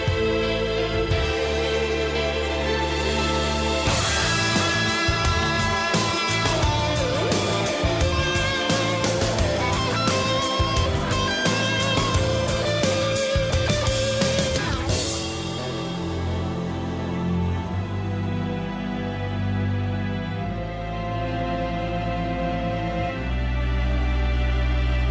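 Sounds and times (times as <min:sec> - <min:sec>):
piano: 0:00.0 - 0:25.0
string instruments: 0:00.0 - 0:25.0.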